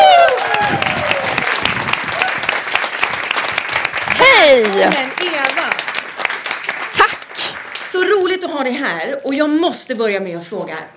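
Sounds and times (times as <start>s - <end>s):
audience applause: 0.0s - 8.4s
speech: 4.6s - 5.1s, 8.4s - 10.9s.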